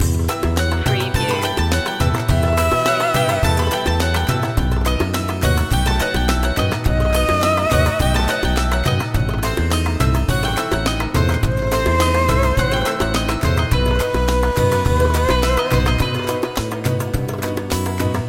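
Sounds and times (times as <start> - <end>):
middle eastern oasis music loop: 0.0 - 18.2.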